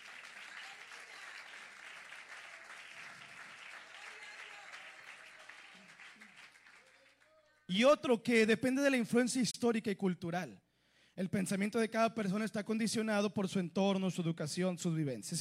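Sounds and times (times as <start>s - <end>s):
audience clapping in praise: 0.0s - 7.5s
speech: 7.7s - 10.6s, 11.2s - 15.3s.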